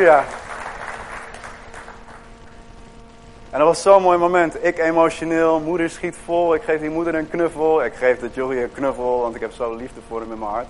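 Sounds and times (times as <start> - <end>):
speech: 0.0 - 0.4, 3.5 - 10.6
church congregation applauding during a service: 0.0 - 2.3
faint constant hum: 0.0 - 10.6.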